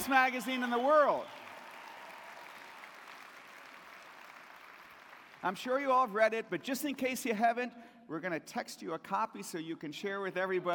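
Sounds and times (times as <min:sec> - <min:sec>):
speech: 0:00.0 - 0:01.4, 0:05.4 - 0:10.7
crowd applauding: 0:00.0 - 0:05.7.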